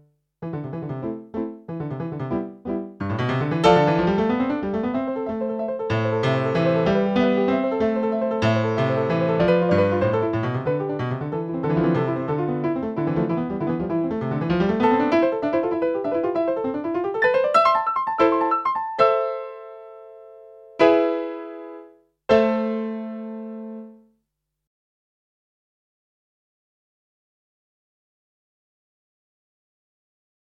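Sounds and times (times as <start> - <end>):
minuet: 0.4 - 24.0.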